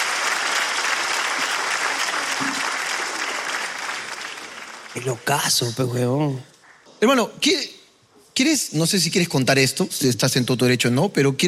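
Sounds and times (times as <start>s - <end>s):
audience applause for a guest: 0.0s - 5.8s
speech: 5.0s - 7.8s, 8.4s - 11.4s.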